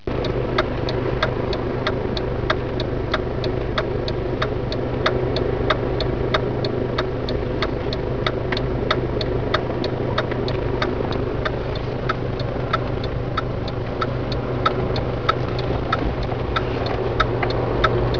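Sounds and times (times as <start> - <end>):
turn signal blinker ticking: 0.0 - 18.1.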